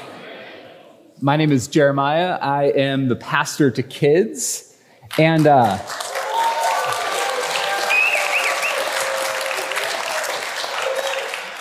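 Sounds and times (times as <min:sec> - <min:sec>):
speech: 0:01.2 - 0:06.1
church congregation applauding: 0:05.1 - 0:11.6.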